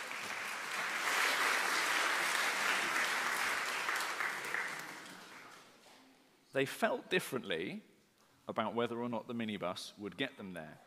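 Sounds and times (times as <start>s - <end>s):
audience clapping: 0.0s - 5.8s
speech: 6.6s - 7.9s, 8.5s - 10.8s.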